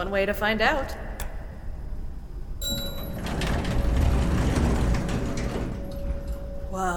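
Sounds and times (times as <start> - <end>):
speech: 0.0 - 1.1, 6.7 - 6.9
elevator machinery starting up behind dirty metal doors: 2.6 - 6.9.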